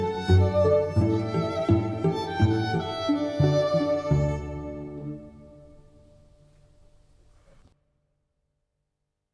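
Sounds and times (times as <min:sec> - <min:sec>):
classical party music: 0:00.0 - 0:07.2.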